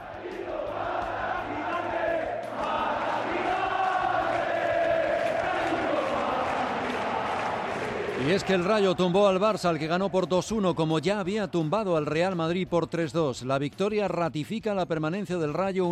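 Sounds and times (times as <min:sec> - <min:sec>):
stadium crowd chanting: 0:00.0 - 0:11.4
speech: 0:08.2 - 0:15.8.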